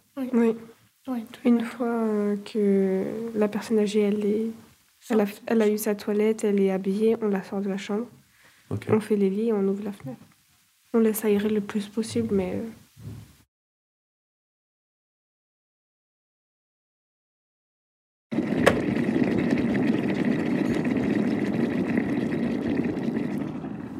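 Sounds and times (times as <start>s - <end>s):
speech: 0.2s - 10.3s, 10.9s - 13.2s
kettle heating water: 18.4s - 23.9s.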